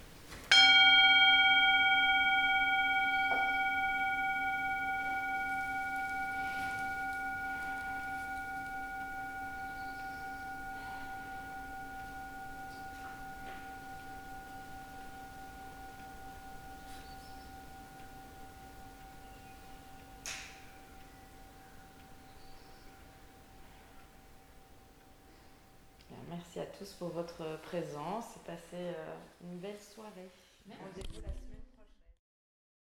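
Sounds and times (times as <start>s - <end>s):
gong strike: 0.5s - 25.4s
speech: 26.6s - 31.5s.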